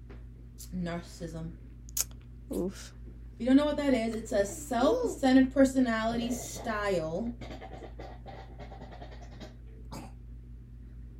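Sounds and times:
speech: 0.6s - 1.7s, 2.5s - 7.7s
woman clearing her throat: 6.2s - 10.2s.

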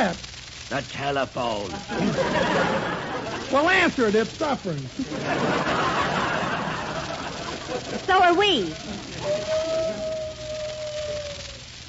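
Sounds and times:
speech: 0.0s - 5.9s, 7.7s - 9.9s
laughter: 1.7s - 4.1s, 4.9s - 10.7s
wolf-like howl: 9.1s - 11.7s.

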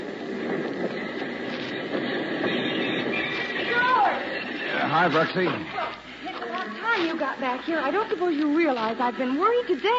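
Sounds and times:
work train arriving at station, rumbling and clattering: 0.0s - 9.9s
high train wheel squeal: 0.5s - 5.9s
speech: 5.0s - 5.8s, 7.0s - 9.9s.

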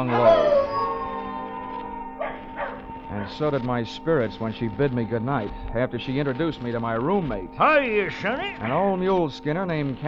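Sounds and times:
speech: 0.0s - 0.6s, 3.3s - 10.0s
dog howling: 0.0s - 1.5s, 2.2s - 3.4s
dog barking: 2.2s - 3.3s, 8.6s - 8.9s.

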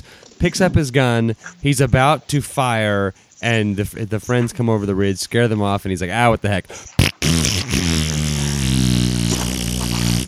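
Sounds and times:
speech: 0.4s - 8.0s
fart noise: 7.0s - 10.2s.

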